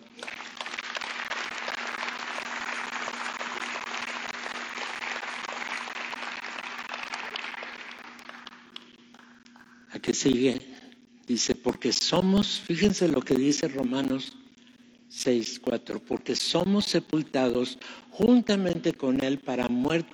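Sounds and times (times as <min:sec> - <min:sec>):
audience applauding: 0:00.0 - 0:09.7
speech: 0:10.0 - 0:10.6, 0:11.3 - 0:14.4, 0:15.1 - 0:20.1.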